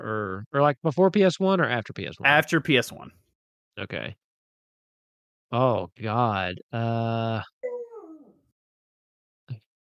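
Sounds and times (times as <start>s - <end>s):
speech: 0.0s - 3.2s, 3.8s - 4.2s, 5.5s - 7.6s
person imitating a dog yelping and whining: 7.6s - 8.4s.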